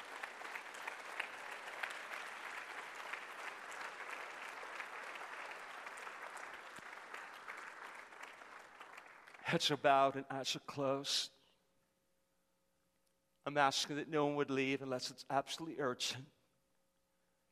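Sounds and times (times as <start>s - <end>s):
audience clapping in praise: 0.0s - 9.8s
speech: 9.5s - 11.4s, 13.5s - 16.4s.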